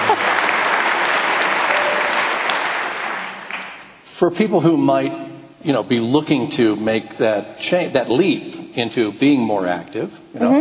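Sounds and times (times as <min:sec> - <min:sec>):
live audience clapping: 0:00.0 - 0:04.0
speech: 0:04.2 - 0:10.5.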